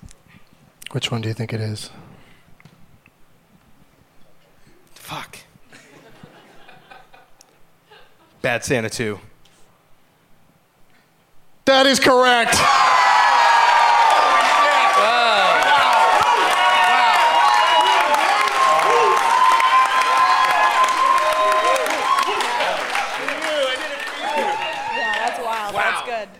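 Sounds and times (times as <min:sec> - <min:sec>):
speech: 0:00.9 - 0:02.1, 0:08.5 - 0:09.3, 0:11.7 - 0:13.0
laughter: 0:05.7 - 0:08.4
studio audience cheering and applauding a correct answer: 0:12.4 - 0:26.3.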